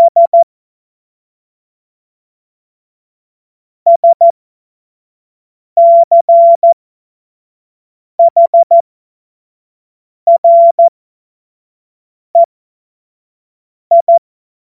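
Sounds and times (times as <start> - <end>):
CW Morse code beeps: 0.1 - 0.4, 3.9 - 4.3, 5.8 - 6.8, 8.2 - 8.8, 10.3 - 10.9, 13.9 - 14.2.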